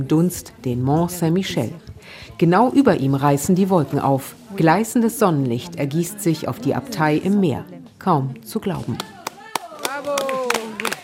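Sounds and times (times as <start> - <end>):
speech: 0.0 - 9.2
small group hand claps for arriving hikers: 8.9 - 11.0
people shouting and cheering: 9.0 - 11.0.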